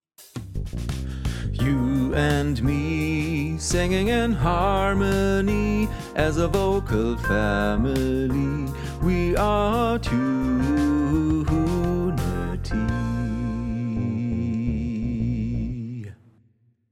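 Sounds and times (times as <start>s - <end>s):
bass: 0.4s - 16.2s.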